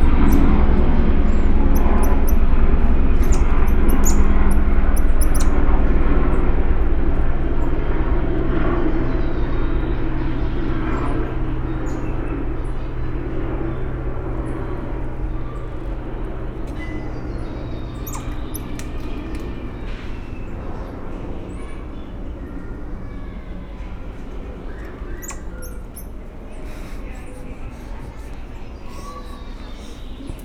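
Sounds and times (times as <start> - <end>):
airplane: 0.0 - 30.4
Goeldi's tamarin monkey calling: 3.2 - 5.5, 11.6 - 19.9, 21.6 - 30.4.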